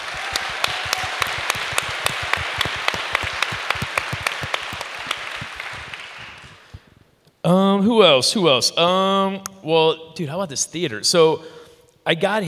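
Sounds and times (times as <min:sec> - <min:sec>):
audience applause: 0:00.0 - 0:06.9
speech: 0:07.8 - 0:12.4.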